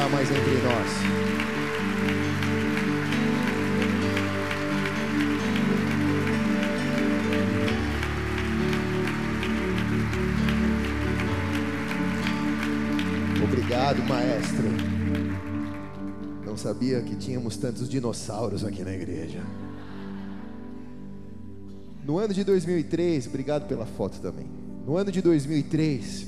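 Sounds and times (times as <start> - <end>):
church audience applauding: 0.0 - 16.7
speech: 0.2 - 2.2, 16.6 - 19.7, 22.1 - 26.2.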